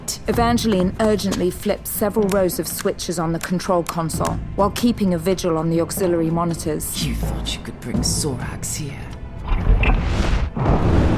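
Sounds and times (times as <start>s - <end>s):
speech: 0.3s - 9.8s
colossal explosion and volcanic eruption: 9.6s - 11.1s.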